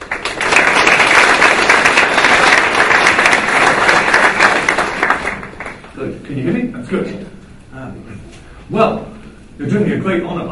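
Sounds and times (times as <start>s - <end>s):
crowd applause: 0.0s - 5.9s
speech: 6.0s - 9.0s, 9.6s - 10.5s.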